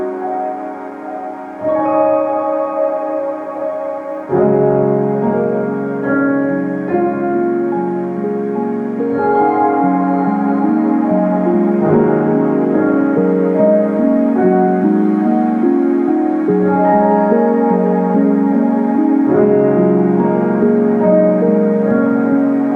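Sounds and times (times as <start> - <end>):
ambient piano music: 0.0 - 22.7.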